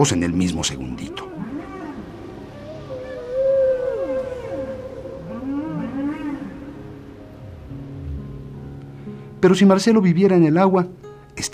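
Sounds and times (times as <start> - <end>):
speech: 0.0 - 1.4, 9.4 - 11.5
underwater whale or dolphin calls: 1.0 - 8.4
high warbling squeals: 1.2 - 9.0
low steady rumble: 7.1 - 9.3.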